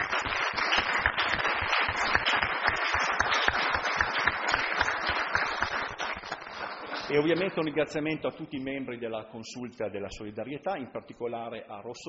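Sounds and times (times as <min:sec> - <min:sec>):
crowd applauding: 0:00.0 - 0:07.8
speech: 0:07.1 - 0:12.0.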